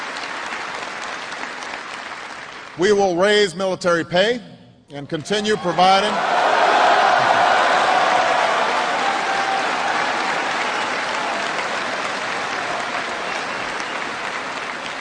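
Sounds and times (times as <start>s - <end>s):
audience applause: 0.0s - 2.8s, 6.0s - 14.9s
speech: 2.8s - 6.4s.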